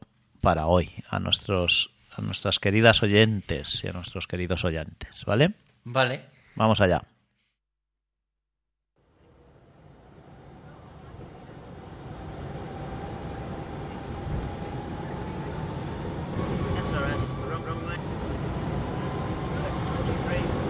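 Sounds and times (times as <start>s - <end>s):
speech: 0.4s - 7.1s
faint sustained whine: 9.0s - 20.6s
airport ambience roar while waiting for a plane to depart: 9.4s - 20.6s.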